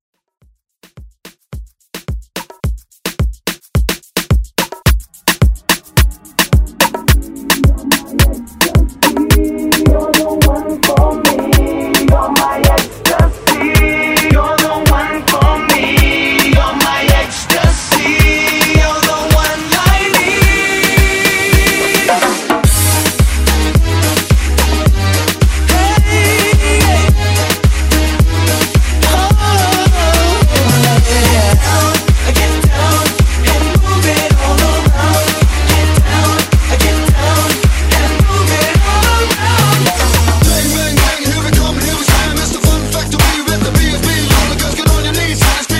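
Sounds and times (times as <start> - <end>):
moombahton edit: 0.2 - 45.7.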